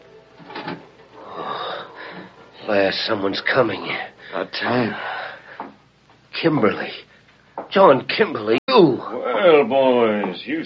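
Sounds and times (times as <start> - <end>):
room door creaking slowly open: 0.4 - 1.0
speech: 2.7 - 5.1, 6.4 - 7.1, 7.7 - 10.6.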